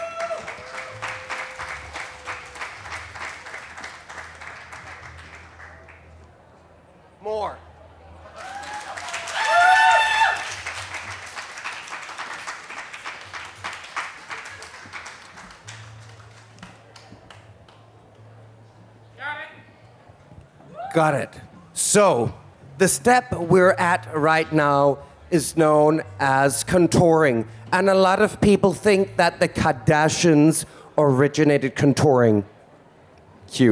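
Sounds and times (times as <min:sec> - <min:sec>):
round of applause: 0:00.0 - 0:06.2, 0:08.2 - 0:17.8
speech: 0:21.0 - 0:32.5, 0:33.5 - 0:33.7.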